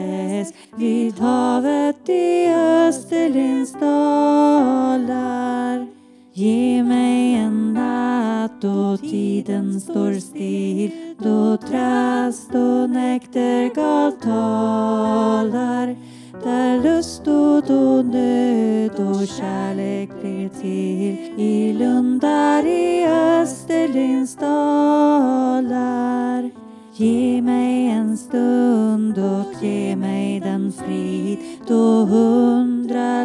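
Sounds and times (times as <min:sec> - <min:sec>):
alto voice singing: 0:00.0 - 0:33.2.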